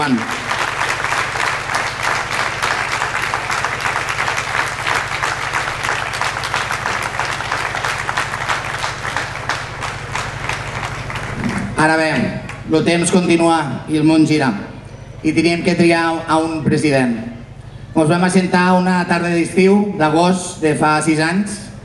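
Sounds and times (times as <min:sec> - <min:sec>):
speech: 0:00.0 - 0:00.4, 0:11.8 - 0:17.3, 0:18.0 - 0:21.7
crowd applauding: 0:00.0 - 0:12.7
low steady hum: 0:00.0 - 0:21.8.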